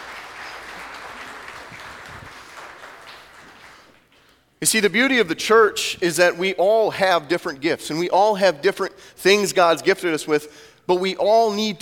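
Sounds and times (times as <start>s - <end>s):
audience round of applause: 0.0s - 4.2s
speech: 4.6s - 11.8s.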